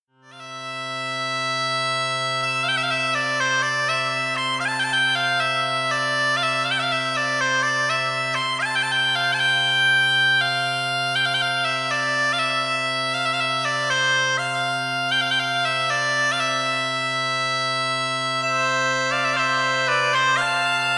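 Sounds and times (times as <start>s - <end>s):
bagpipe solo: 0.2s - 20.9s.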